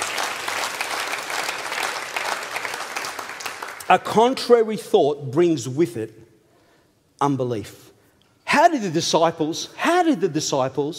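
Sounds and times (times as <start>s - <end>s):
audience round of applause: 0.0s - 3.9s
speech: 3.9s - 6.2s, 7.2s - 7.8s, 8.6s - 10.9s.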